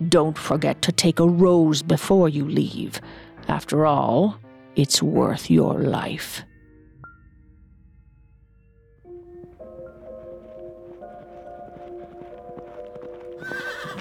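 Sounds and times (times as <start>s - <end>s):
speech: 0.1s - 6.5s
horse hooves clip-clopping: 9.4s - 14.0s
horse whinnying: 13.4s - 14.0s.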